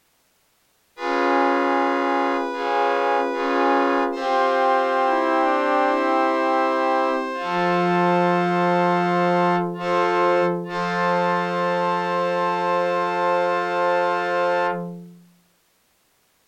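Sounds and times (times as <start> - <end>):
musical cadence: 1.0 - 15.4.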